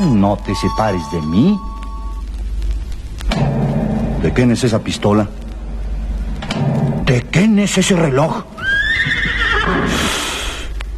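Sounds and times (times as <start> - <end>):
speech: 0.0 - 1.8, 4.2 - 5.4, 7.1 - 8.6
low steady rumble: 1.6 - 8.6
horse whinnying in a corral: 8.6 - 10.2.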